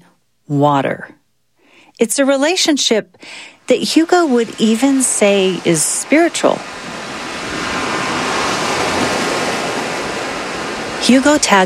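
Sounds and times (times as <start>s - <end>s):
speech: 0.5s - 1.2s, 2.0s - 6.9s, 11.1s - 11.6s
ocean waves breaking on a beach: 3.7s - 11.6s.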